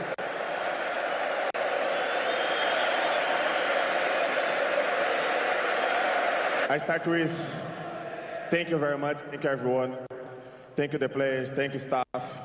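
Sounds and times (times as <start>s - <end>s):
crowd applause and cheering: 0.0s - 7.0s
speech: 6.7s - 7.7s, 8.5s - 10.1s, 10.8s - 12.0s.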